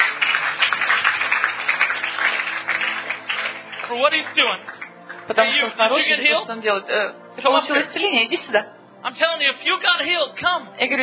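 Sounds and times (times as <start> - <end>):
audience clapping: 0.0 - 6.4
speech: 3.9 - 11.0.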